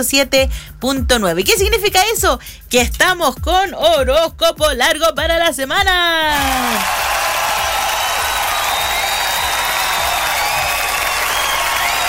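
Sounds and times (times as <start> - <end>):
speech: 0.0 - 7.1
applause: 6.3 - 12.0.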